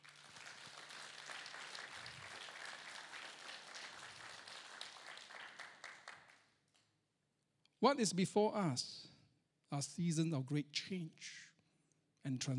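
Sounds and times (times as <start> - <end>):
audience clapping: 0.0 - 6.8
speech: 7.8 - 9.1, 9.7 - 11.5, 12.2 - 12.5.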